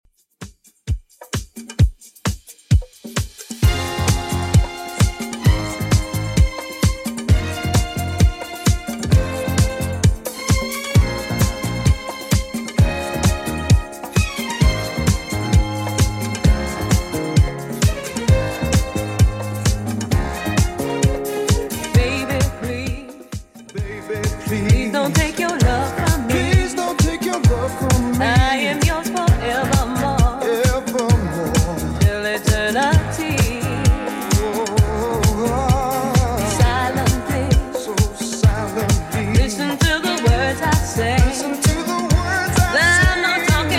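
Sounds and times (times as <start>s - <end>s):
70s style music loop at 131 bpm: 0.1s - 43.7s.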